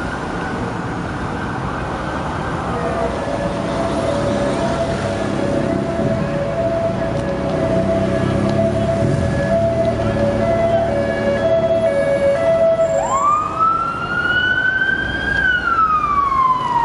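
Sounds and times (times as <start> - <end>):
siren: 0.0 - 16.8.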